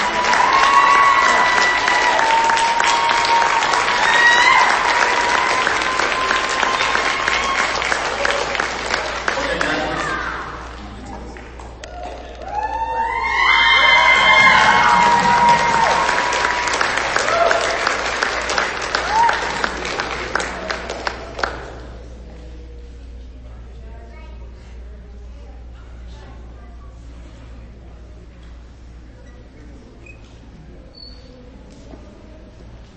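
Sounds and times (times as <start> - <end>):
round of applause with cheering: 0.0 - 12.7, 13.4 - 21.9.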